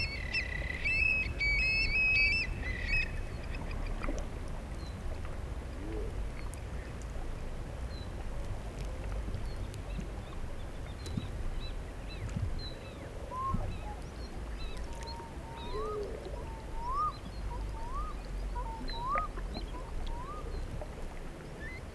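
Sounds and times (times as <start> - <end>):
low rumble of river in the floodplain: 0.0 - 21.9
bird repeating a short rising whistle: 16.8 - 17.2, 17.8 - 18.2, 18.9 - 19.3, 20.1 - 20.5.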